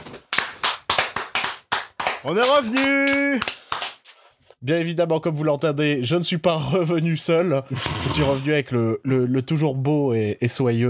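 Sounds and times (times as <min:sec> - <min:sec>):
clapping: 0:00.2 - 0:04.1
speech: 0:02.2 - 0:03.6, 0:04.6 - 0:10.8.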